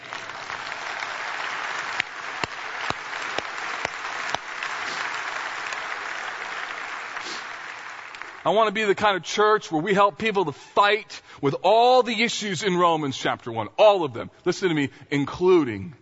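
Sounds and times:
audience applause: 0:00.0 - 0:08.6
speech: 0:08.4 - 0:16.0.

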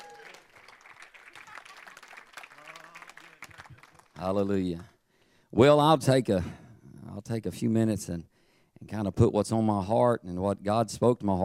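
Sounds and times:
crowd, audience applauding: 0:00.0 - 0:04.2
speech: 0:04.2 - 0:04.9, 0:05.5 - 0:06.6, 0:07.2 - 0:08.3, 0:08.9 - 0:11.4.

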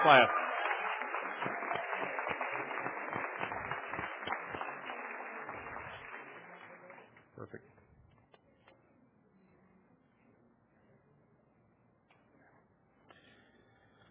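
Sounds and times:
audience applause: 0:00.0 - 0:07.1.

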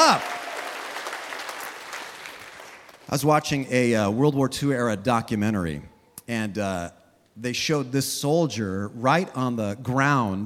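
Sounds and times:
audience applause: 0:00.0 - 0:03.1
speech: 0:00.1 - 0:00.3, 0:03.1 - 0:10.4.

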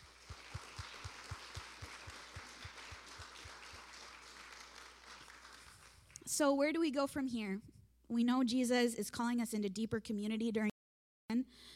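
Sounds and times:
audience applause: 0:00.0 - 0:06.2
speech: 0:06.4 - 0:10.7, 0:11.3 - 0:11.7.

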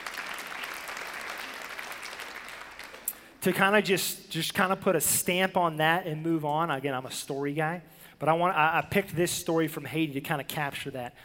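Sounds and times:
audience applause: 0:00.0 - 0:03.1
speech: 0:03.4 - 0:11.2.

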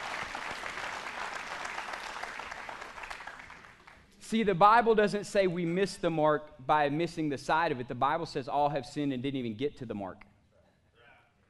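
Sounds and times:
audience applauding: 0:00.0 - 0:04.1
speech: 0:04.3 - 0:10.3.

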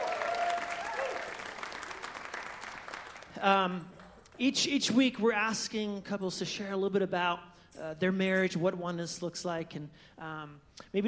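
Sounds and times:
audience applause greeting a married couple on stage: 0:00.0 - 0:03.4
speech: 0:03.4 - 0:11.0.

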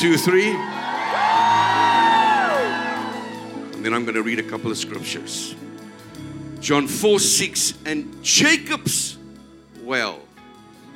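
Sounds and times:
speech: 0:00.0 - 0:01.0, 0:03.8 - 0:05.8, 0:06.6 - 0:09.2, 0:09.9 - 0:10.3
crowd shouting a long loud woo: 0:00.0 - 0:03.7.

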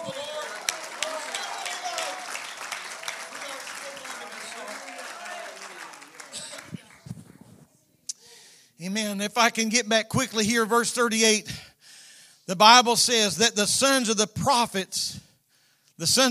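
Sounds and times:
audience clapping hands: 0:00.0 - 0:07.4
speech: 0:08.8 - 0:11.6, 0:12.5 - 0:15.2, 0:16.0 - 0:16.2.

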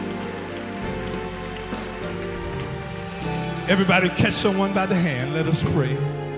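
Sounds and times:
audience clapping hands: 0:00.0 - 0:05.8
speech: 0:03.7 - 0:06.2.

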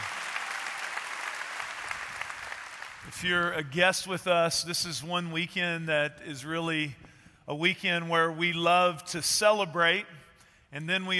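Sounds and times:
audience applause: 0:00.0 - 0:03.1
speech: 0:03.1 - 0:11.1.

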